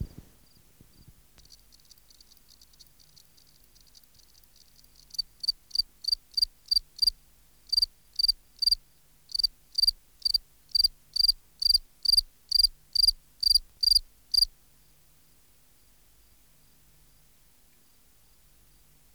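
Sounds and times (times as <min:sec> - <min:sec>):
field cricket chirping: 0:00.0 - 0:07.1, 0:07.7 - 0:14.5.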